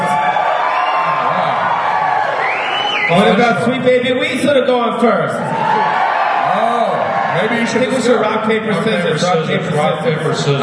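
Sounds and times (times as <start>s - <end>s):
audience applause: 0.0s - 3.6s, 5.5s - 8.4s
audience cheering: 0.0s - 9.8s
speech: 3.1s - 5.6s, 7.4s - 10.6s.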